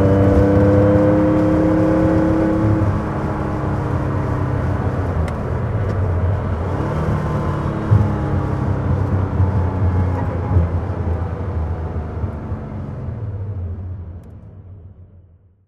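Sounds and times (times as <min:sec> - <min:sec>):
Porsche 911 2.2 T rally driving: 0:00.0 - 0:14.8.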